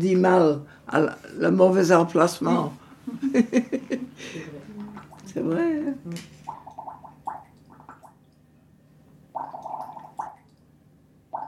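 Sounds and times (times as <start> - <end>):
speech: 0.0 - 4.6, 5.3 - 6.3
blowing bubbles in water: 6.5 - 8.2, 9.4 - 10.5.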